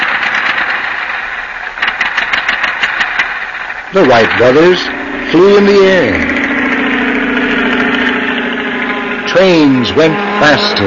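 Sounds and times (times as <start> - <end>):
early automobile engine idling: 0.0 - 10.8
speech: 3.9 - 6.4, 9.3 - 10.8.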